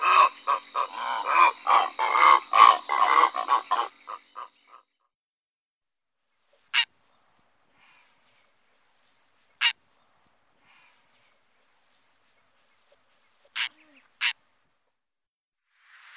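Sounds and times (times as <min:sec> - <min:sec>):
purple heron harsh calls: 0:00.0 - 0:04.8.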